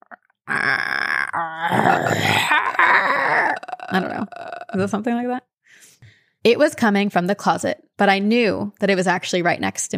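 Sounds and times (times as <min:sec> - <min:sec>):
voice imitating low growl: 0:00.0 - 0:04.9
speech: 0:03.9 - 0:05.4, 0:06.4 - 0:09.9.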